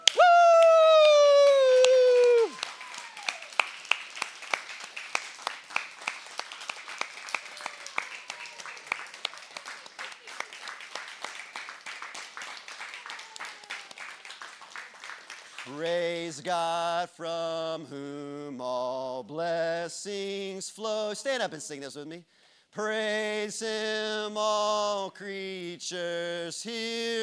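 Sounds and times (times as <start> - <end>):
audience clapping: 0.0 - 16.3
speech: 15.8 - 27.2.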